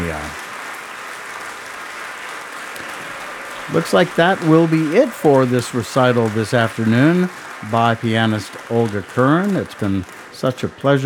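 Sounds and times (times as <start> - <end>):
audience applause after a piano recital in Bennett Gordon Hall, Ravinia Festival: 0.0 - 11.0
laughter: 3.7 - 11.0
speech: 3.7 - 11.0.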